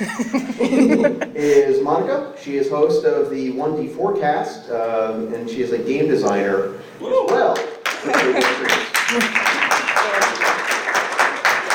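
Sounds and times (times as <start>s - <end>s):
laughter: 0.0s - 1.7s, 8.0s - 9.5s
speech: 0.0s - 9.6s
audience applause: 7.8s - 11.7s.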